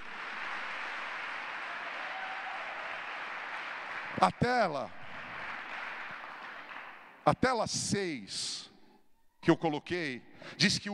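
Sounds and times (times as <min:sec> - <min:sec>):
audience applauding: 0:00.0 - 0:07.2
audience shouting: 0:01.5 - 0:03.2
speech: 0:04.2 - 0:05.0, 0:07.2 - 0:08.7, 0:09.4 - 0:10.9.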